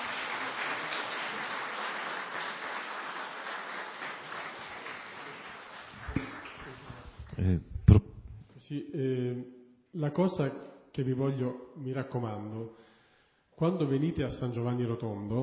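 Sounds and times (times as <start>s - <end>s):
warm applause for a guest at the end of a talk: 0.0s - 7.5s
speech: 7.4s - 8.1s, 8.7s - 12.8s, 13.6s - 15.4s.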